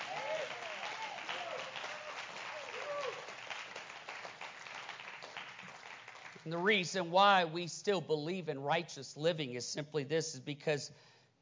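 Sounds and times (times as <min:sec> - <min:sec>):
audience clapping hands: 0:00.0 - 0:06.8
speech: 0:06.4 - 0:11.1.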